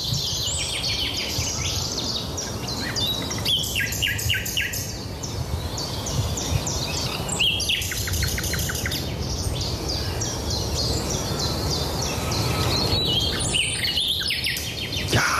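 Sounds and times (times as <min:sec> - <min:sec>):
common nightingale singing: 0:00.0 - 0:15.3.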